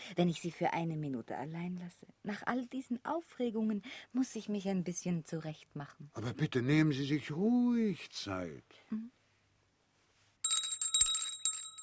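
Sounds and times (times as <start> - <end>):
speech: 0.1 - 9.2
service bell rung to summon a butler: 10.4 - 11.8.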